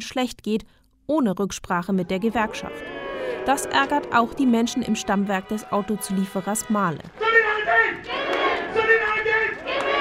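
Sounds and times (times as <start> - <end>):
speech: 0.0 - 8.4
crowd of workers shouting at a rally: 2.2 - 10.0.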